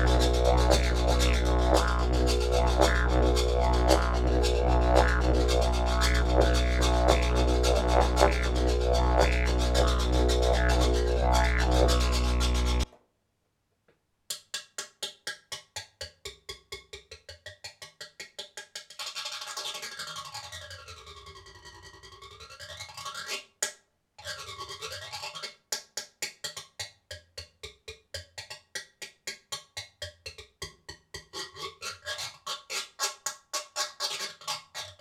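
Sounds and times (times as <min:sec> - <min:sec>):
didgeridoo made of maple with a rasp: 0:00.0 - 0:12.9.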